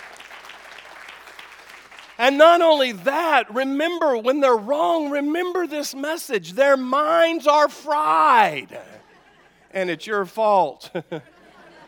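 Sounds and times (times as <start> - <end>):
audience applause and hand clapping: 0.0 - 2.2
speech: 2.2 - 9.0, 9.7 - 11.3
laughter: 8.7 - 9.8, 10.8 - 11.8.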